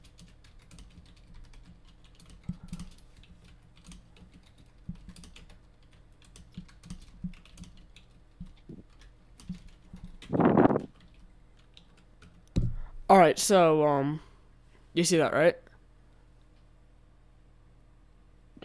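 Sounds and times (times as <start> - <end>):
typing a message on a computer keyboard: 0.0 - 12.6
speech: 13.1 - 14.3, 15.0 - 15.6.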